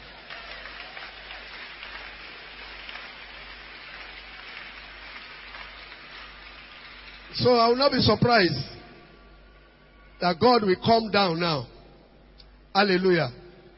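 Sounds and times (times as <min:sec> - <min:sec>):
audience applause: 0:00.0 - 0:07.5
speech: 0:07.3 - 0:08.8, 0:10.2 - 0:11.7, 0:12.8 - 0:13.4.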